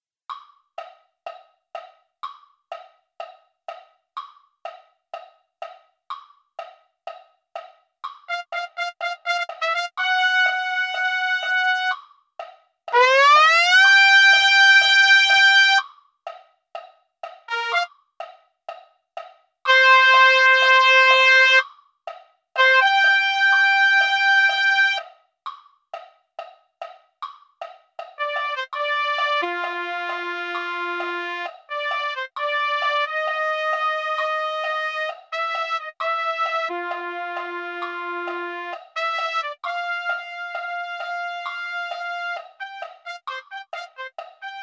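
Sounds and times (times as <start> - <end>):
trumpet: 8.3 - 12.0, 12.9 - 15.8, 17.5 - 17.9, 19.7 - 21.6, 22.6 - 25.0, 28.2 - 44.6.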